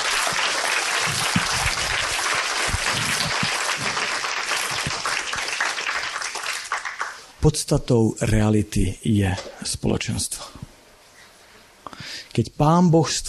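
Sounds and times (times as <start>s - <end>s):
audience applause at an evening church service: 0.0s - 7.3s
speech: 7.4s - 10.6s, 12.4s - 13.2s.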